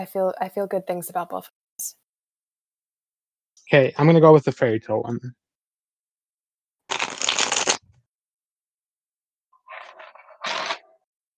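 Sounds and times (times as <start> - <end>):
speech: 0.0 - 2.0, 3.7 - 5.4
tarot cards being shuffled: 6.9 - 7.8.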